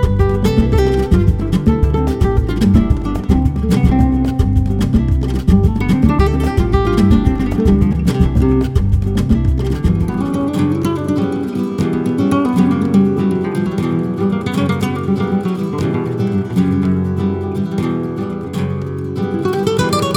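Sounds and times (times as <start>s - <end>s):
flamenco guitars playing: 0.0s - 20.1s.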